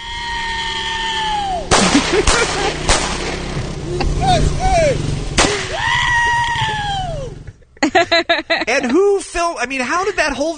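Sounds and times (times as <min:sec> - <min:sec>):
laughter: 0:01.0 - 0:02.9, 0:03.8 - 0:10.5
guns shot into the air: 0:01.7 - 0:03.8, 0:05.3 - 0:05.9
speech: 0:08.7 - 0:10.5.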